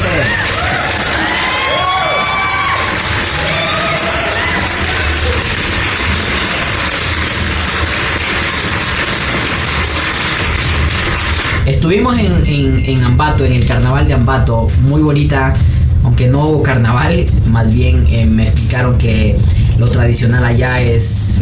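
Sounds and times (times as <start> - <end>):
audience applause: 0.0 - 12.2
speech: 11.9 - 21.3.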